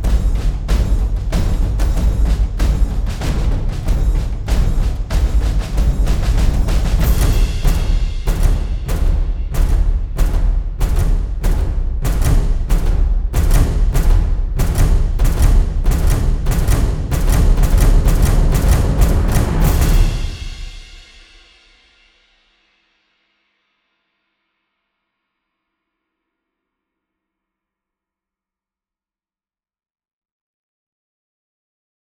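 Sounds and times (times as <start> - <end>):
percussion: 0.0 - 22.7.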